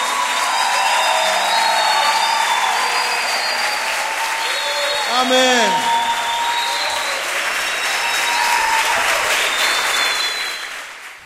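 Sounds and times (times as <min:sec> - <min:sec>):
crowd applause at a nighttime religious worship gathering: 0:00.0 - 0:11.2
speech: 0:05.2 - 0:05.9.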